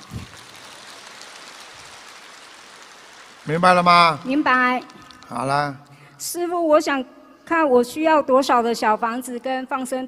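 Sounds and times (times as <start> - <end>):
applause: 0.0 - 5.7
speech: 3.5 - 10.0.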